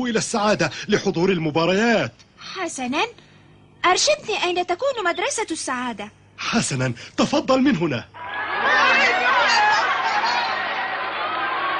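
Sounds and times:
speech: 0.0 - 3.2, 3.8 - 8.2
faint laughs: 8.2 - 11.7
large crowd chattering at a match: 8.2 - 11.7.

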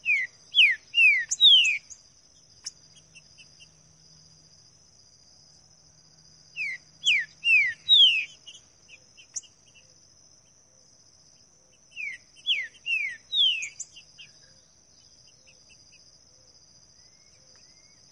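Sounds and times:
green-winged saltator singing in the bush: 0.0 - 2.0, 6.5 - 9.8, 11.9 - 14.6.

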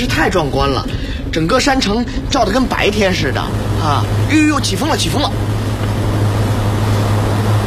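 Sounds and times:
speech: 0.0 - 5.5
strong wind during a thunderstorm: 0.0 - 7.6
heavy rain during a thunderstorm: 2.1 - 7.6.

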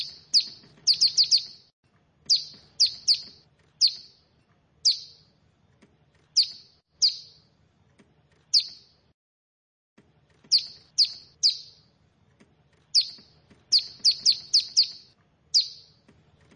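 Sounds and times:
bar-winged prinia giving high sharp down-slurred chirps: 0.0 - 1.7, 2.3 - 4.2, 4.8 - 5.3, 6.3 - 7.5, 8.5 - 9.0, 10.5 - 11.9, 12.9 - 16.0.

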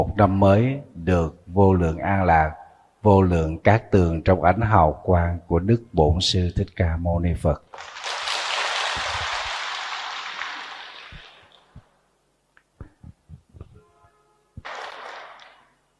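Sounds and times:
speech: 0.0 - 8.0
spring rain falling in northern Vietnam: 7.8 - 11.9.

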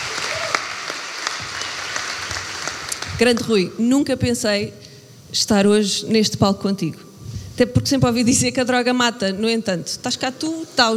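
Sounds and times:
audience applause at a live comedy roast: 0.0 - 3.5
speech: 3.2 - 10.9.

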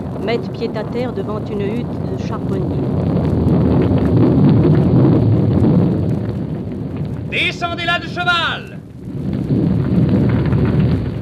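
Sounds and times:
rain: 0.0 - 11.2
thunder: 0.0 - 11.2
speech: 0.2 - 3.7, 7.3 - 8.8.

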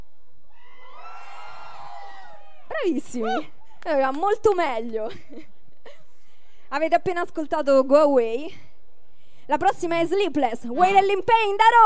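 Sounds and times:
rock concert audience in Arpino screaming and cheering: 0.5 - 2.8
speech: 2.8 - 6.0, 6.7 - 8.7, 9.5 - 11.8.

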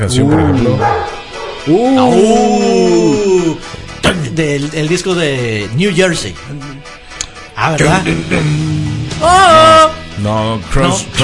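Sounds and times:
speech: 0.0 - 6.6, 7.6 - 11.2
dog barking: 0.8 - 1.6.

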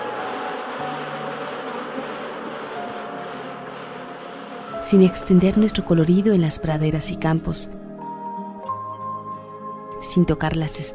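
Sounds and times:
bee buzzing: 0.0 - 5.7
speech: 4.8 - 7.8, 10.1 - 10.9.

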